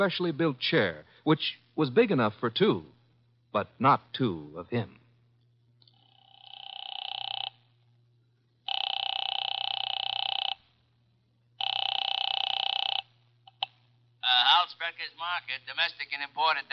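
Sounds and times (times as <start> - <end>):
speech: 0.0 - 5.0, 15.0 - 16.7
telephone ringing tones on the line after a number is dialed: 6.0 - 7.8, 8.6 - 10.8, 11.6 - 14.7.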